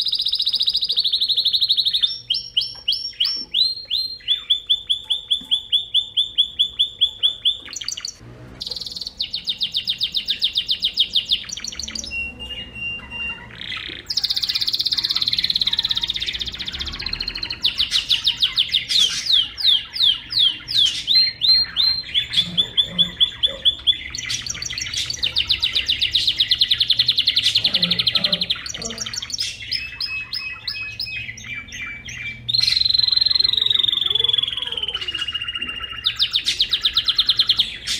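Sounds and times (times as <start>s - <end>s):
songbird singing: 0.0s - 37.9s.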